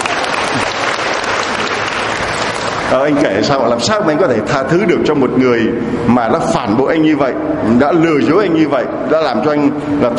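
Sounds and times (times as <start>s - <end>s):
audience applause: 0.0s - 3.1s
speech: 2.9s - 10.1s.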